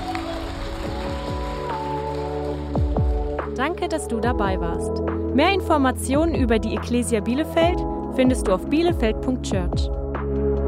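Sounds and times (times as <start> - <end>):
audience applause: 0.0 - 3.4
speech: 3.6 - 10.0.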